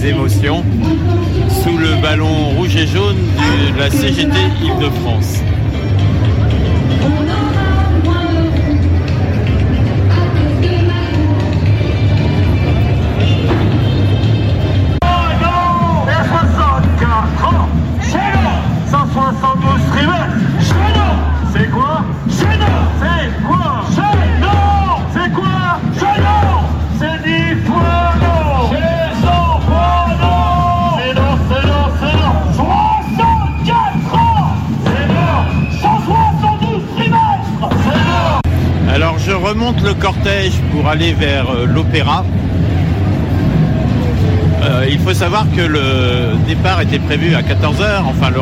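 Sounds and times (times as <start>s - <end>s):
speech: 0.0s - 5.6s, 39.9s - 42.4s, 45.0s - 48.4s
crowd hubbub at a street protest march: 0.0s - 48.4s
people shouting: 20.6s - 26.8s, 27.6s - 38.5s.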